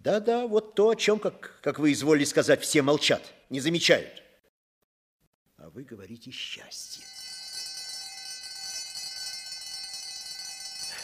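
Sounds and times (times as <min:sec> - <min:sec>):
speech: 0:00.0 - 0:04.2, 0:05.6 - 0:07.2
electric school bell ringing at the end of a break: 0:07.0 - 0:11.0.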